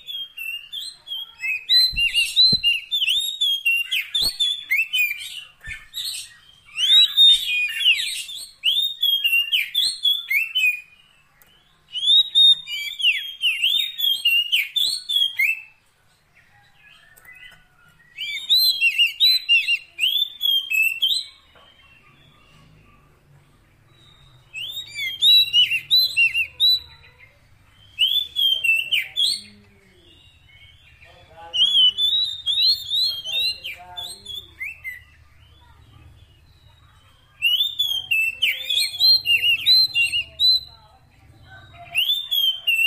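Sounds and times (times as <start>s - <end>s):
Oriental magpie-robin singing: 0.0s - 42.8s.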